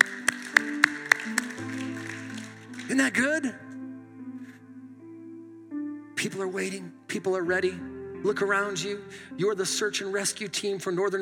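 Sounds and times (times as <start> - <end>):
crowd clapping in unison: 0.0 - 3.4
speech: 2.9 - 3.7, 6.4 - 11.1.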